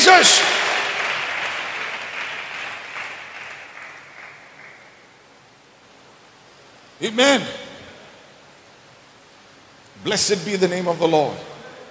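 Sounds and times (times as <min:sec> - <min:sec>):
audience clapping hands: 0:00.0 - 0:05.1
speech: 0:00.1 - 0:00.7, 0:07.0 - 0:07.6, 0:10.0 - 0:11.5.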